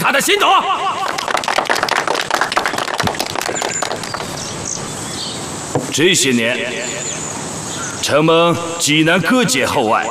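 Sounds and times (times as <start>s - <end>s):
speech: 0.1s - 1.8s, 6.0s - 7.3s, 8.0s - 10.0s
warm applause welcoming a speaker: 1.0s - 4.9s.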